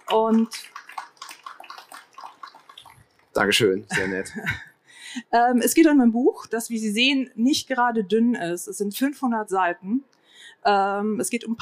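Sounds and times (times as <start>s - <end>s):
crowd applauding: 0.0s - 4.1s
speech: 0.1s - 0.8s, 3.4s - 11.6s
laughter: 3.9s - 4.7s.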